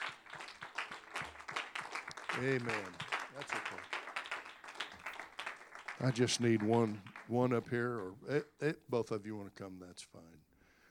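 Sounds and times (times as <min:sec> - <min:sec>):
church congregation clapping in praise: 0:00.0 - 0:08.2
speech: 0:02.4 - 0:04.0, 0:06.0 - 0:10.5.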